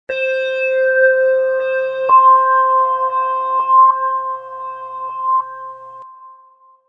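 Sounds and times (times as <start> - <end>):
high evil high-pitched creepy background tone: 0.1 - 6.0.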